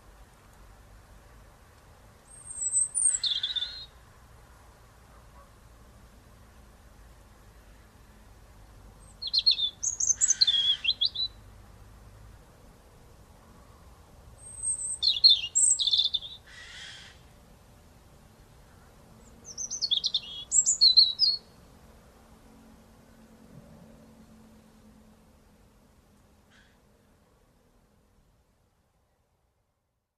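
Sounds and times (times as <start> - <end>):
European robin singing: 2.2 - 4.0, 9.0 - 11.5, 14.3 - 17.3, 18.6 - 21.7.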